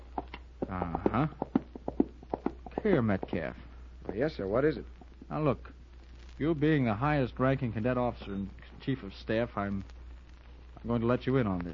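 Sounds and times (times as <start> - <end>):
horse hoof clops: 0.0 - 5.2
speech: 1.1 - 1.5, 2.8 - 5.8, 6.4 - 10.0, 10.8 - 11.7.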